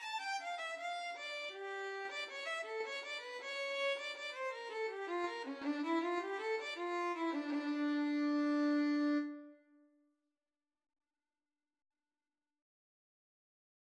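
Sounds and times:
violin and cello duet: 0:00.0 - 0:09.4.

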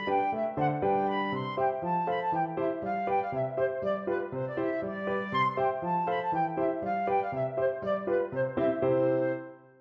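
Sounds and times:
flute playing polka: 0:00.0 - 0:09.5.

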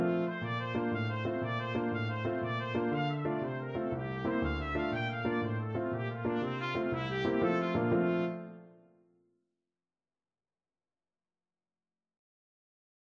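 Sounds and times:
Irish jig medley on trumpet: 0:00.0 - 0:08.6.

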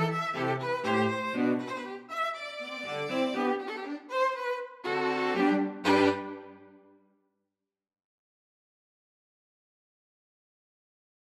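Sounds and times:
string quartet: 0:00.0 - 0:06.8.

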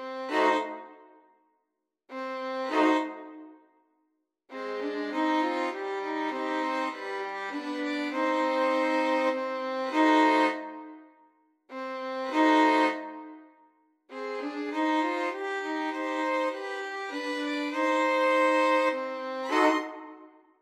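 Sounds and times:
violin trio playing: 0:00.0 - 0:01.0, 0:02.1 - 0:03.4, 0:04.5 - 0:10.8, 0:11.7 - 0:13.3, 0:14.1 - 0:20.3.

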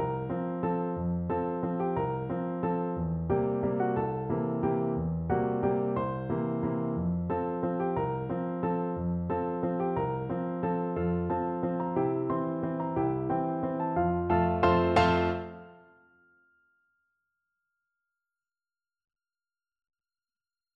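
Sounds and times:
piano duet: 0:00.0 - 0:16.0.

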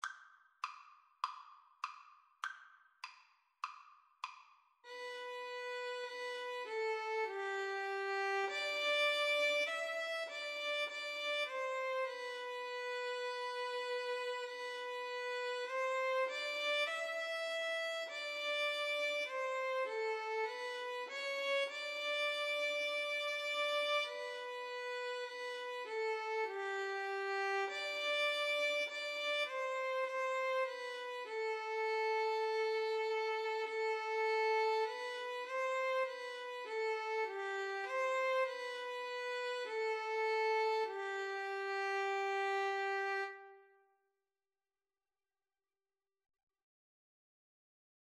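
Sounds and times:
violin in karaoke duet: 0:04.8 - 0:43.8.

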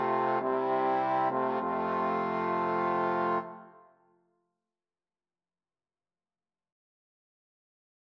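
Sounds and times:
trombone quartet playing a hymn: 0:00.0 - 0:03.7.

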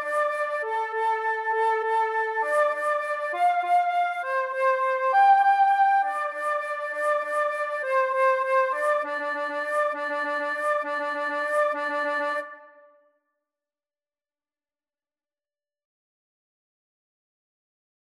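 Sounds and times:
flute duet: 0:00.0 - 0:13.1.

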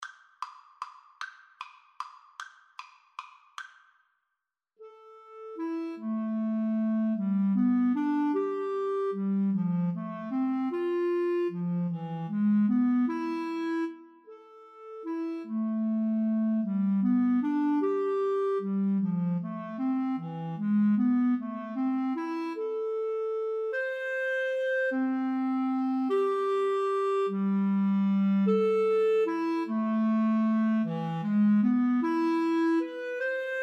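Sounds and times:
flute and clarinet duet: 0:04.9 - 0:33.6.

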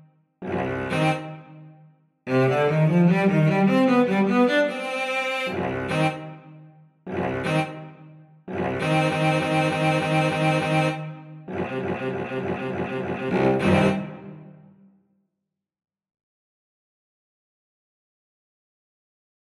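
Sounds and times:
cello duet: 0:00.4 - 0:01.5, 0:02.3 - 0:06.4, 0:07.1 - 0:07.9, 0:08.5 - 0:14.5.

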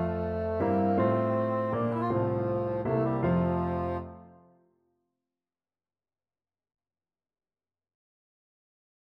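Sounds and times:
bassoon playing a sonata: 0:00.0 - 0:04.5.

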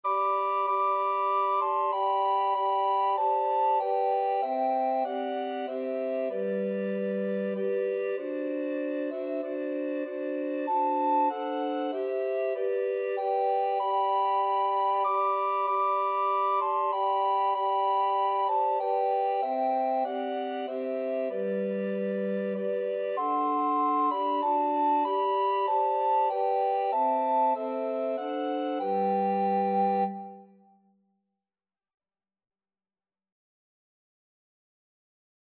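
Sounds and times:
recorder quartet playing a carol: 0:00.1 - 0:30.5.

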